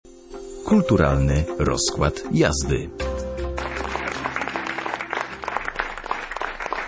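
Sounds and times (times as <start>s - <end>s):
speech: 0.7s - 3.2s
theatre audience applause after premiere: 3.5s - 6.8s.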